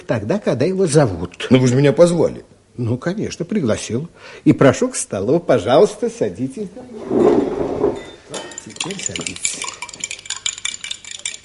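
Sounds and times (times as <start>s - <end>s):
speech: 0.1s - 7.7s, 8.8s - 9.6s
spoon clinking in a tea cup while stirring sugar: 7.9s - 11.4s.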